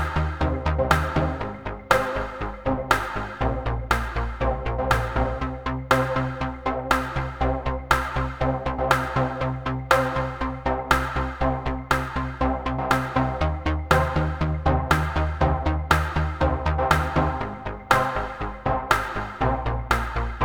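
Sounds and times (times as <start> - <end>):
pulsing underscore music: 0.0 - 20.4.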